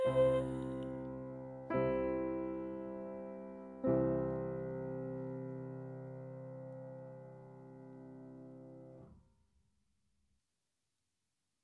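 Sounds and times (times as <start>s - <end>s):
piano chant: 0.0s - 6.3s.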